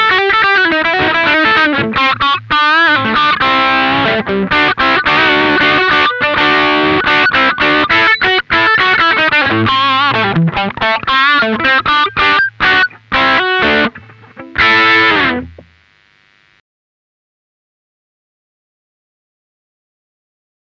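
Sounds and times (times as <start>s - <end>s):
classic rock crunch electric guitar through headphone amp: 0.0s - 15.8s.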